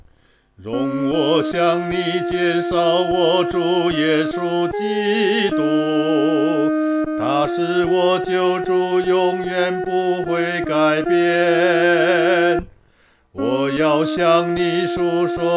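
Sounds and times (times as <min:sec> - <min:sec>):
person singing solo: 0:00.6 - 0:12.7, 0:13.4 - 0:15.5.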